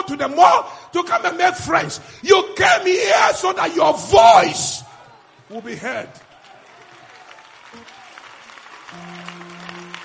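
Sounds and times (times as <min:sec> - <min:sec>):
speech: 0:00.1 - 0:04.9, 0:05.5 - 0:06.3, 0:08.9 - 0:09.2
audience clapping: 0:06.0 - 0:10.0.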